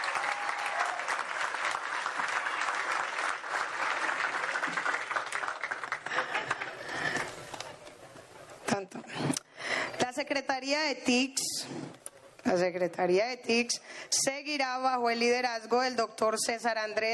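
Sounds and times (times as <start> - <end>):
audience applause: 0.0 - 7.7
speech: 10.2 - 11.8, 12.5 - 17.1.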